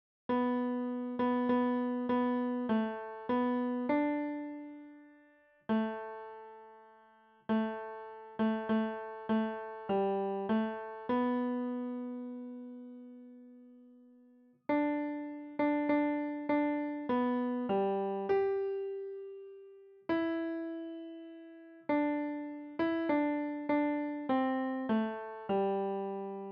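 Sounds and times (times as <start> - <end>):
piano: 0.3 - 26.5.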